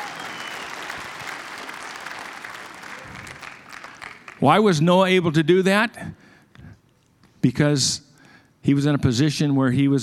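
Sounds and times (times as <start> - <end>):
audience applause for a volunteer at a live talk: 0.0 - 4.4
speech: 4.4 - 6.2, 7.4 - 10.0.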